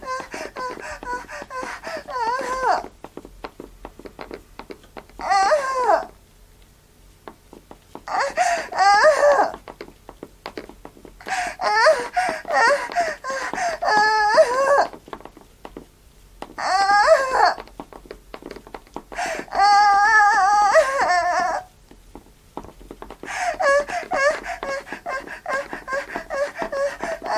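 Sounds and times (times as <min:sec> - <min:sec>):
young woman moaning: 0:00.0 - 0:02.9, 0:05.2 - 0:06.2, 0:08.1 - 0:09.6, 0:11.3 - 0:15.0, 0:16.6 - 0:17.7, 0:19.2 - 0:21.7, 0:23.3 - 0:27.3.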